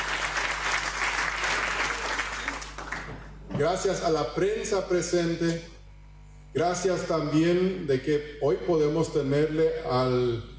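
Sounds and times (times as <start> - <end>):
audience applause: 0.0 - 3.3
speech: 3.6 - 5.8, 6.5 - 10.5.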